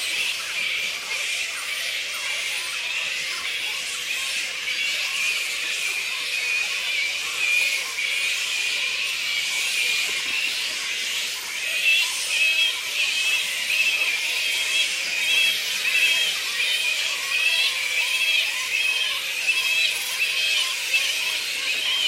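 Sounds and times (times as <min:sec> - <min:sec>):
Black flying fox colony squeaking: 0:00.0 - 0:22.0.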